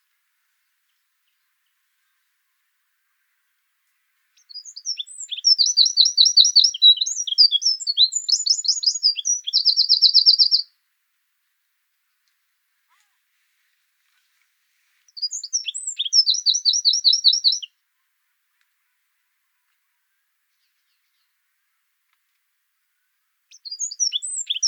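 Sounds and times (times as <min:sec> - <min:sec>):
Eurasian wren singing: 0:04.4 - 0:10.7, 0:15.1 - 0:17.7, 0:23.5 - 0:24.6.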